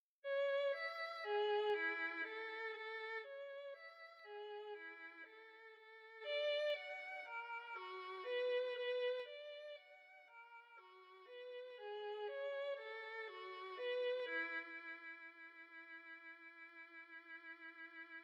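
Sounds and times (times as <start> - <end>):
classical minuet scherzo: 0.4 - 18.2.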